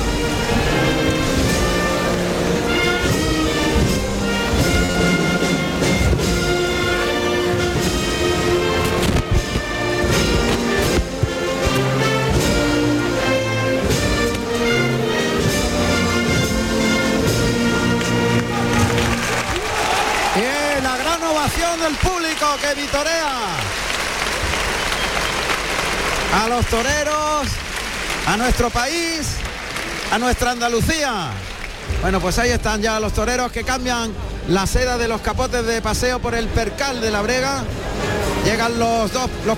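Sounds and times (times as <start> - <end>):
brass band playing the national anthem in a bullring: 0.0 - 30.8
crowd applause: 17.6 - 32.5
crowd shouting: 18.3 - 21.2
speech: 28.4 - 29.4, 30.1 - 37.8, 38.4 - 39.5.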